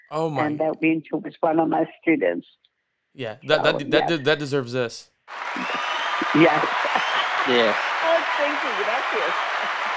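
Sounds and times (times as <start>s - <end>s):
speech: 0.1s - 5.7s, 6.3s - 9.8s
audience applause: 5.3s - 9.9s.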